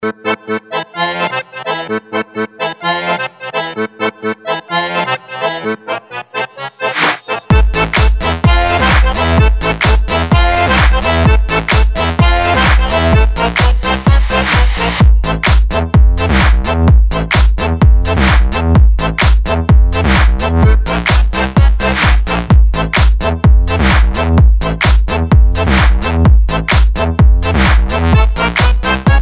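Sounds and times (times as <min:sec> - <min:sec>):
karaoke instrumental: 0:00.0 - 0:29.2.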